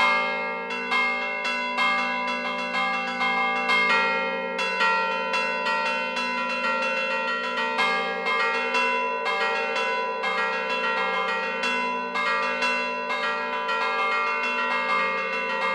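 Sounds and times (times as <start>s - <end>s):
church bells ringing: 0.0s - 15.7s.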